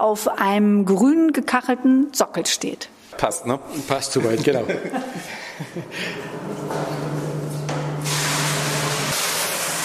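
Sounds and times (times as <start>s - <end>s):
speech: 0.0s - 6.8s
laughter: 4.2s - 6.4s
water running into copper brewing kettle: 7.7s - 9.8s.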